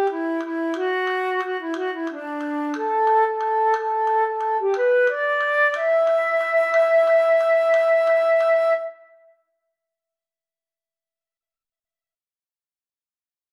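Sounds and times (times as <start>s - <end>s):
flute piece: 0.0s - 9.3s.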